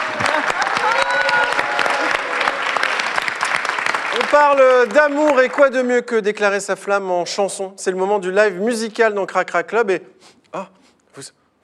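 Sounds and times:
audience applause: 0:00.0 - 0:05.8
speech: 0:04.3 - 0:11.6.

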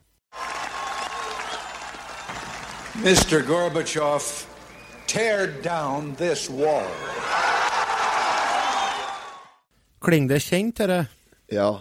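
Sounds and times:
audience applauding: 0:00.3 - 0:09.6
speech: 0:03.0 - 0:04.5, 0:05.1 - 0:07.4, 0:10.1 - 0:11.7.

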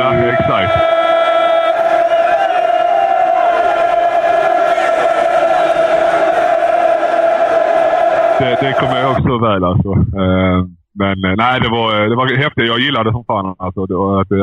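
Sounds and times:
football crowd droning chant: 0:00.0 - 0:09.2
speech: 0:08.6 - 0:14.4.

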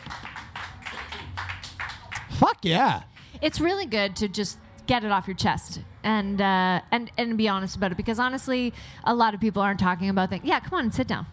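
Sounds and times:
audience applause: 0:00.0 - 0:02.9
speech: 0:02.4 - 0:11.3.

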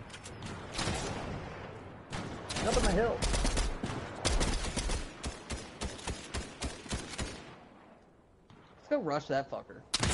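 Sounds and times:
gunfire in a shooter video game: 0:02.1 - 0:07.5, 0:10.0 - 0:10.1
speech: 0:02.6 - 0:03.4, 0:09.0 - 0:10.1.

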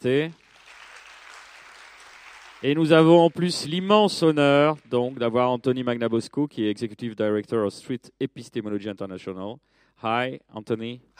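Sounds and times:
speech: 0:00.0 - 0:00.4, 0:02.6 - 0:11.1
audience applause: 0:00.4 - 0:05.3.

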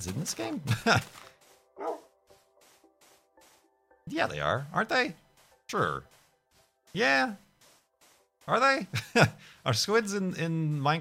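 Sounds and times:
speech: 0:00.0 - 0:01.3, 0:04.1 - 0:06.2, 0:06.9 - 0:07.4, 0:08.5 - 0:10.9
wolf barking in Minecraft: 0:01.8 - 0:02.1.

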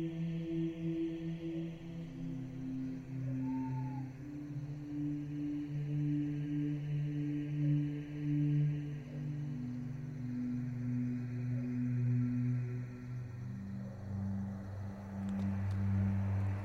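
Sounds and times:
low sustained humming tones: 0:00.0 - 0:16.6
night insects chirring in a chapel graveyard: 0:00.0 - 0:16.6.

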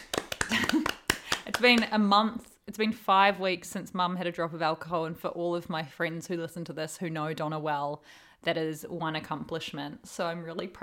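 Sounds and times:
clapping: 0:00.0 - 0:01.9
speech: 0:01.6 - 0:10.8.

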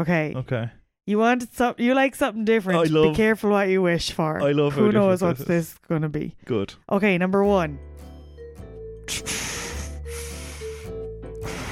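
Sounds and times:
speech: 0:00.0 - 0:08.1, 0:09.1 - 0:09.5
voice imitating Darth Vader's heavy breathing: 0:09.1 - 0:11.7.

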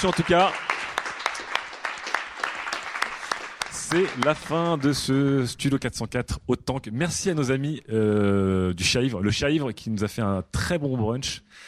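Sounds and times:
speech: 0:00.0 - 0:00.6, 0:03.9 - 0:11.6
audience applause: 0:00.0 - 0:05.2.

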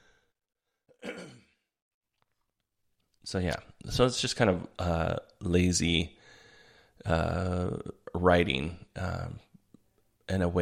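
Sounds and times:
throat clearing: 0:01.0 - 0:01.6
speech: 0:03.3 - 0:06.2, 0:07.0 - 0:09.4, 0:10.3 - 0:10.5.

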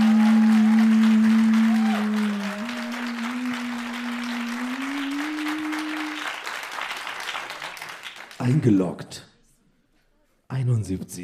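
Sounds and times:
audience applause: 0:00.0 - 0:08.8
speech: 0:08.6 - 0:09.2, 0:10.7 - 0:11.2.

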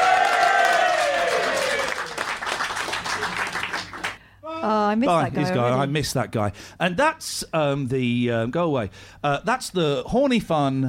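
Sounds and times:
audience applause: 0:00.0 - 0:04.2
speech: 0:04.9 - 0:10.8.

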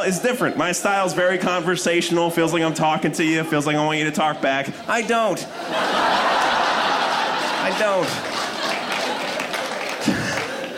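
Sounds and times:
speech: 0:00.0 - 0:06.6, 0:07.6 - 0:08.4
laughter: 0:03.9 - 0:10.7
crowd clapping: 0:06.0 - 0:10.7.

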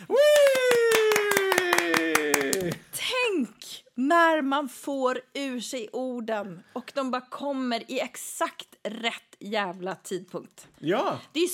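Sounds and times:
applause: 0:00.0 - 0:02.9
speech: 0:04.1 - 0:11.5.

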